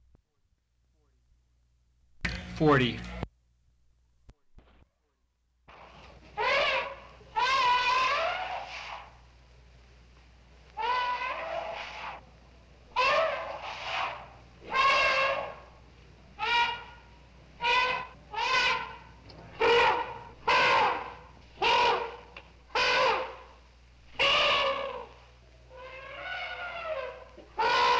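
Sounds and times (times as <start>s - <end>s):
clicks: 2.2s - 3.3s
speech: 2.6s - 3.2s
elephant trumpeting: 5.7s - 9.2s, 10.7s - 27.9s.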